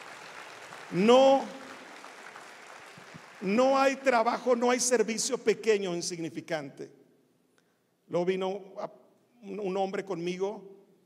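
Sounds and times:
audience applauding: 0.0s - 4.2s
speech: 0.9s - 1.6s, 3.4s - 7.0s, 8.1s - 10.8s.

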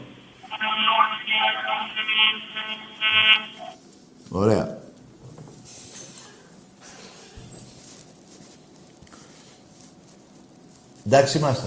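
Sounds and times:
voice imitating a train: 0.5s - 3.8s
speech: 1.4s - 4.8s, 11.1s - 11.6s.

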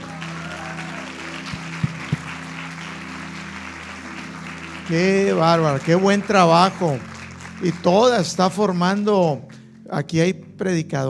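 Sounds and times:
crowd applauding: 0.0s - 9.7s
speech: 4.9s - 11.0s.

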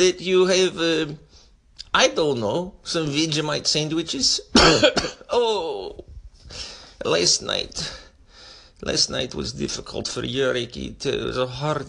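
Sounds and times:
speech: 0.0s - 1.2s, 1.9s - 8.0s, 8.8s - 11.8s
person coughing: 4.6s - 5.7s.

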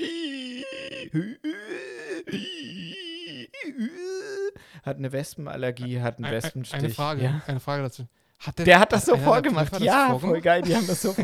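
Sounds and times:
person imitating laboured breathing: 0.0s - 4.8s
speech: 1.1s - 1.6s, 2.3s - 2.6s, 4.8s - 11.2s
laughter: 9.0s - 11.2s.

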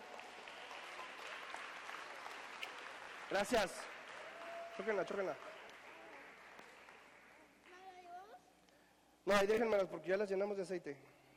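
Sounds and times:
audience applause: 0.0s - 7.6s
speech: 3.3s - 3.9s, 4.8s - 5.5s, 9.3s - 11.2s.

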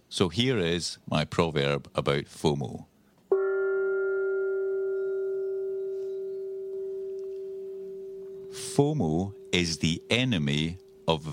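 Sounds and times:
speech: 0.1s - 2.9s, 8.8s - 11.3s
gong being rung: 3.3s - 11.3s.

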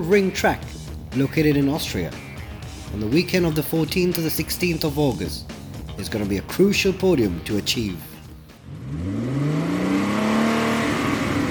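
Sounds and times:
speech: 0.0s - 2.2s, 2.9s - 8.1s
Ford Mustang engine roaring: 8.2s - 11.4s.

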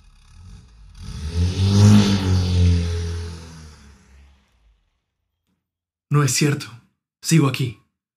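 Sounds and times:
sports car engine revving and driving off: 0.0s - 5.1s
speech: 6.2s - 7.8s.

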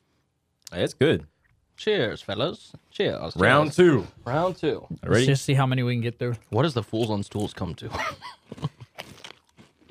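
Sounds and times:
speech: 0.7s - 8.7s
crunching a hot chip: 8.4s - 9.9s.

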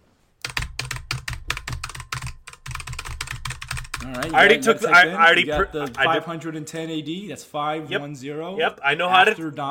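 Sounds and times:
typing on a keyboard: 0.4s - 4.3s
speech: 4.0s - 9.6s.

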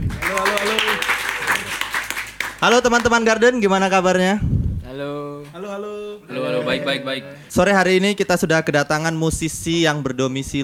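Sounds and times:
audience applause: 0.0s - 3.1s
speech: 2.6s - 10.6s.

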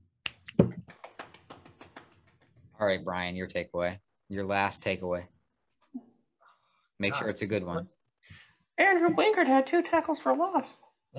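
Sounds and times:
hand clapping: 0.2s - 2.6s
speech: 2.8s - 5.4s, 7.0s - 8.0s, 8.8s - 11.1s.

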